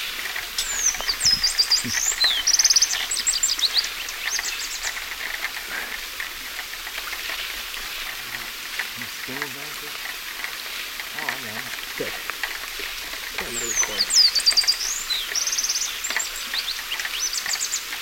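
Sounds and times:
shiny cowbird calling in South American eastern lowlands: 0.0s - 10.0s, 10.8s - 17.9s.

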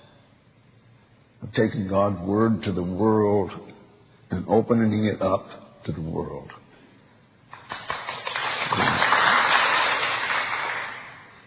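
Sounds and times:
speech: 1.5s - 3.7s, 4.3s - 6.6s
audience clapping hands: 7.5s - 11.4s.

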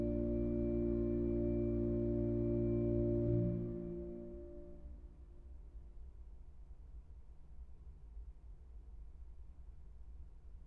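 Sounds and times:
organ mass music: 0.0s - 5.0s.

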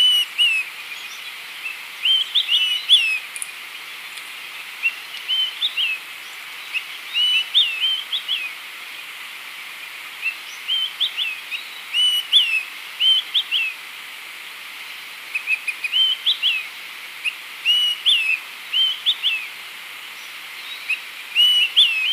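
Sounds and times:
continuous high insect buzz: 0.0s - 22.1s
olive-sided flycatcher whistling: 2.0s - 3.2s, 4.8s - 6.0s, 7.1s - 8.5s, 10.7s - 13.7s, 17.7s - 19.4s, 20.7s - 22.1s.

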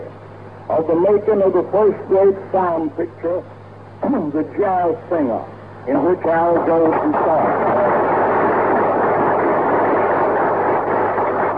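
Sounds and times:
speech: 0.7s - 7.8s
audience applauding: 7.1s - 11.5s.

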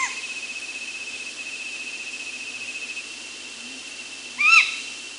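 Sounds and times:
Stygian owl in Ecuador: 0.0s - 0.4s, 3.6s - 5.0s.

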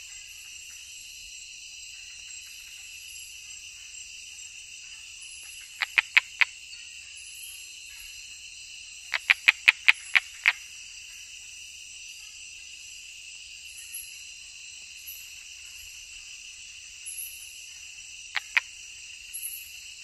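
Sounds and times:
Osteocephalus tree frog calling in the Ecuadorian Amazon: 5.5s - 6.6s, 9.1s - 10.7s, 18.3s - 18.8s.

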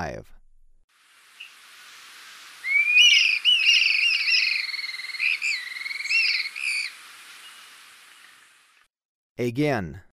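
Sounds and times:
Dusky-capped flycatcher giving a long rolling trilled whistle: 2.6s - 6.9s.

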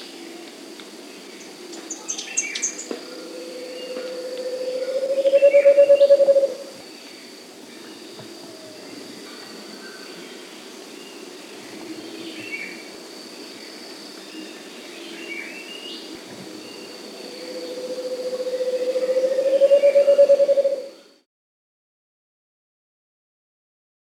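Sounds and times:
Scaled Antpitta Grallaria guatimalensis calling in South America: 1.5s - 6.8s, 16.5s - 21.1s.

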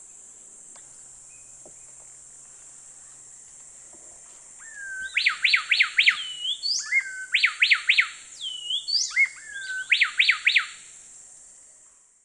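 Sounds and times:
Pheugopedius coraya call in the South American eastern lowlands: 4.6s - 10.8s.

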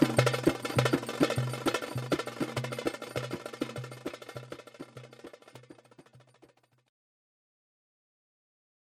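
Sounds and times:
Arabic instrumental darbuka music: 0.0s - 6.9s.

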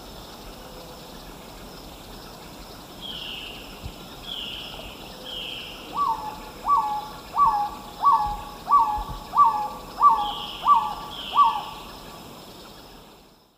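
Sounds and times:
Black-tailed Trogon singing mellow hooted notes: 5.9s - 12.0s.

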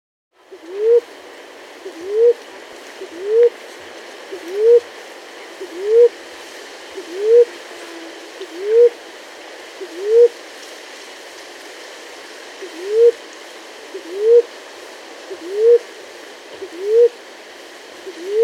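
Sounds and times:
Maroon-chested ground dove calling mellow rising hoots in South America: 0.4s - 1.2s, 1.8s - 3.7s, 4.3s - 6.2s, 7.0s - 9.1s, 9.8s - 10.4s, 12.6s - 14.6s, 15.3s - 17.3s, 18.0s - 18.4s.

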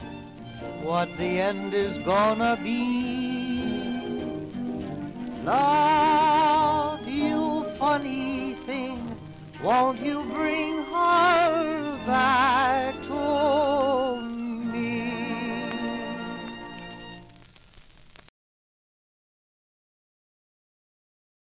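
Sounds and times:
society orchestra: 0.0s - 17.4s
singing: 0.8s - 4.2s, 5.4s - 16.8s.

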